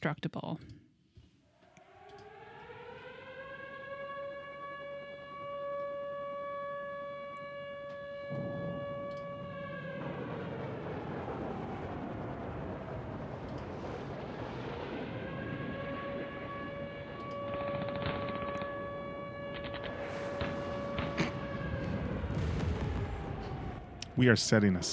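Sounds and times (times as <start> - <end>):
speech: 0.0 - 0.8, 24.2 - 24.9
klaxon siren wailing: 1.6 - 24.9
rumbling noise: 8.3 - 24.9.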